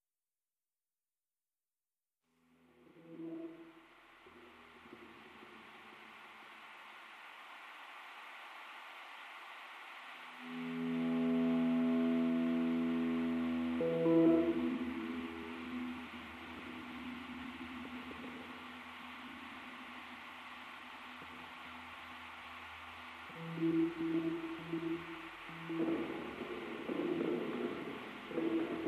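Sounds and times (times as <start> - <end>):
guitars: 10.4 - 28.8.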